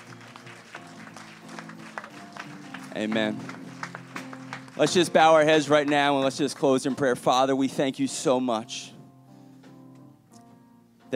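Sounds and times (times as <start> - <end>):
crowd clapping: 0.0 - 7.4
speech: 2.9 - 3.6, 4.8 - 8.9.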